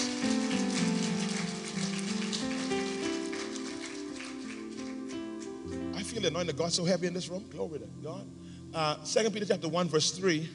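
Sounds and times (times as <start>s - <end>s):
audience clapping: 0.0s - 6.1s
sustained low keyboard chords: 0.0s - 10.5s
speech: 6.2s - 10.5s.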